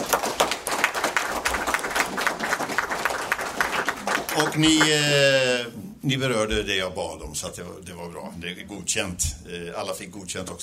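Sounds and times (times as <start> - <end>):
audience applause: 0.0 - 5.2
speech: 4.4 - 10.6.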